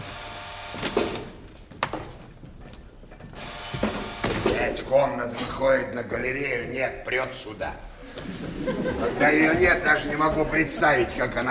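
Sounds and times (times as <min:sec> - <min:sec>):
old telephone bell ringing: 0:00.0 - 0:01.4, 0:03.4 - 0:04.6
speech: 0:04.8 - 0:11.4
laughter: 0:08.0 - 0:11.4.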